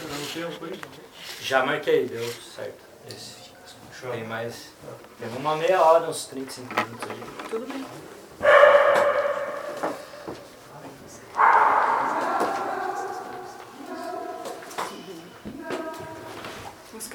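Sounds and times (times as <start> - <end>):
speech: 0.4 - 3.4, 4.0 - 9.0
faint short dog yips: 8.4 - 10.3, 11.4 - 13.6
dog barking: 8.4 - 10.4, 11.4 - 14.5.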